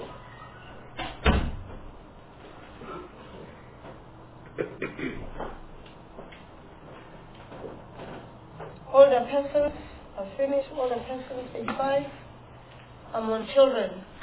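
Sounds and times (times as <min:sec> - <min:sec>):
door closing: 0:00.2 - 0:01.9
speech: 0:04.6 - 0:05.6, 0:09.3 - 0:12.2, 0:13.1 - 0:14.1.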